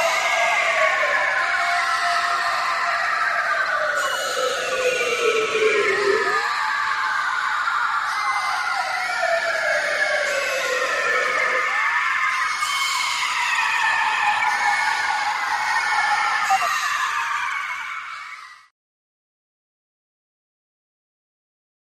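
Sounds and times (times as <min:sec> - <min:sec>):
synthesized alien screams: 0:00.0 - 0:18.4.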